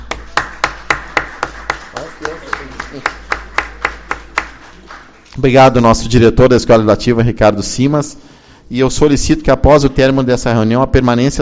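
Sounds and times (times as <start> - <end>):
applause: 0.0 - 5.4
speech: 2.2 - 3.3, 5.4 - 11.4.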